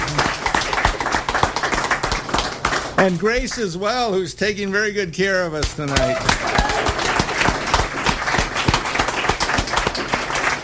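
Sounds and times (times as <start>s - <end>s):
audience applause: 0.0s - 3.3s, 5.9s - 10.6s
speech: 3.0s - 6.8s.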